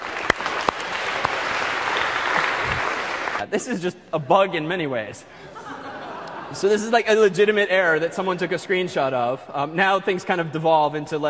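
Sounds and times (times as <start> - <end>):
audience clapping: 0.0 - 3.5
speech: 3.5 - 5.7, 6.5 - 11.2
laughter: 5.4 - 7.0.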